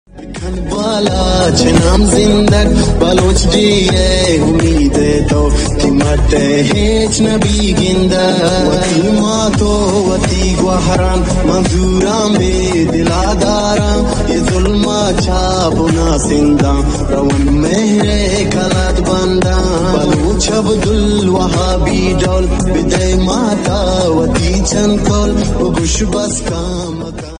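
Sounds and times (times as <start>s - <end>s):
remix music: 0.1s - 27.3s.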